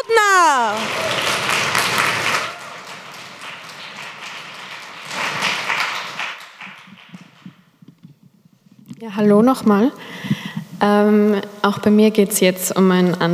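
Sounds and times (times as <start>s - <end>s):
audience applause: 0.0s - 7.6s
speech: 9.1s - 13.3s.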